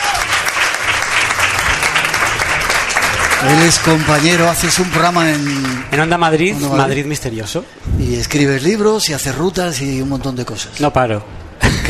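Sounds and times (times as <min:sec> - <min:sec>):
audience applause: 0:00.0 - 0:06.1
speech: 0:03.4 - 0:11.8.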